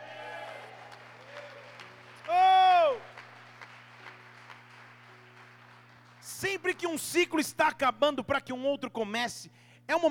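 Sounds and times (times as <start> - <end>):
audience applauding: 0.0 - 7.1
steady low electrical hum: 0.0 - 10.0
speech: 6.5 - 10.0.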